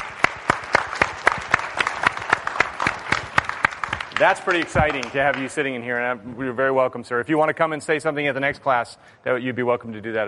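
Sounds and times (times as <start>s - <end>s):
rhythmic applause from a class audience: 0.0s - 5.7s
speech: 4.2s - 10.2s.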